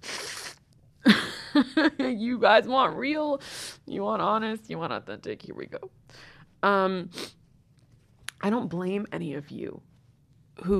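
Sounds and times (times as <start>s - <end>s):
nose blowing: 0.0s - 0.6s
speech: 1.6s - 7.4s, 8.4s - 9.9s, 10.6s - 10.7s.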